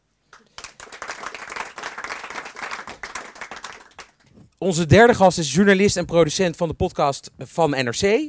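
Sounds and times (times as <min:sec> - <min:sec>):
audience applause: 0:00.3 - 0:04.3
speech: 0:04.6 - 0:08.2.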